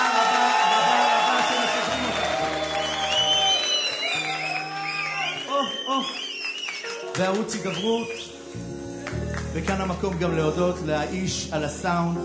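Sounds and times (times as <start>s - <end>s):
audience applause and cheering: 0.0s - 8.4s
speech: 7.2s - 8.7s, 9.5s - 12.2s.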